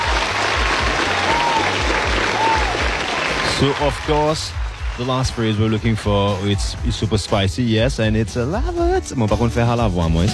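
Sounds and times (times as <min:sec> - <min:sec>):
crowd clapping: 0:00.0 - 0:06.8
speech: 0:03.6 - 0:10.3.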